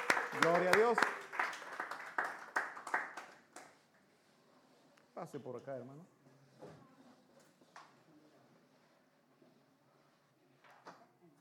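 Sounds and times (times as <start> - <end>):
audience applause: 0.0 - 3.7
speech: 0.4 - 1.2, 5.2 - 6.2.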